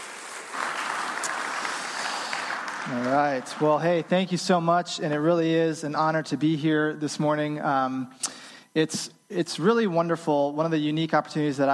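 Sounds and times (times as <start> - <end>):
audience applause: 0.0 - 4.6
speech: 2.9 - 11.7.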